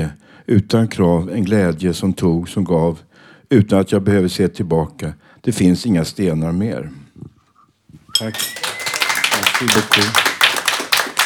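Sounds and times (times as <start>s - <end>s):
speech: 0.5s - 7.0s, 8.2s - 8.6s, 9.6s - 10.3s
person cheering: 8.2s - 10.1s
audience applause: 8.2s - 11.2s.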